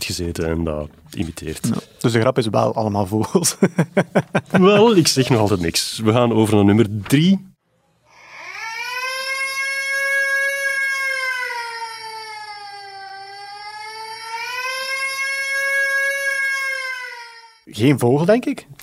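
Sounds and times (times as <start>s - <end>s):
speech: 0.1s - 7.5s, 17.8s - 18.8s
laughter: 3.2s - 5.7s
baby crying: 8.1s - 17.7s.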